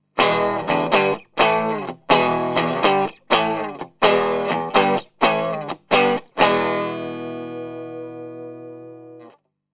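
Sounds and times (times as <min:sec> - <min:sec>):
Stratocaster electric guitar through Magic Pre amp: 0:00.2 - 0:09.4.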